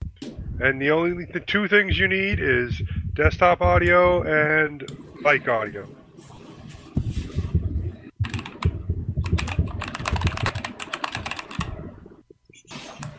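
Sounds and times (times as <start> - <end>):
speech: 0.6 - 6.3
typing on a mechanical keyboard with Cherry MX Blue switches: 8.2 - 11.9.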